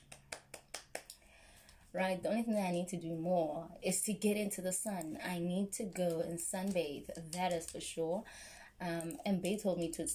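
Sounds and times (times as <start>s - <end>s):
hand clapping: 0.0s - 1.2s
speech: 1.9s - 10.1s.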